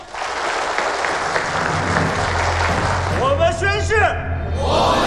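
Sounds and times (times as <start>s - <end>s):
audience applause: 0.0s - 3.4s
speech: 3.9s - 4.9s.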